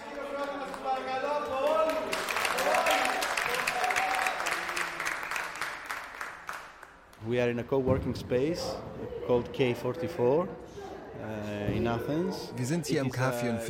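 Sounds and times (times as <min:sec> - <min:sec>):
audience applause: 0:00.0 - 0:07.0
speech: 0:07.3 - 0:13.6.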